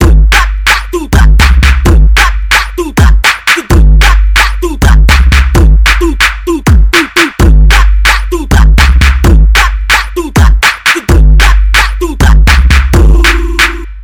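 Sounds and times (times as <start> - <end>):
music beat: 0.0 - 14.0.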